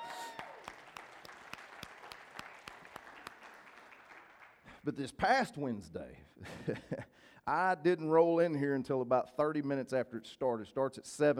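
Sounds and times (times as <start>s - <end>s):
audience round of applause: 0.0s - 4.8s
speech: 4.8s - 11.3s.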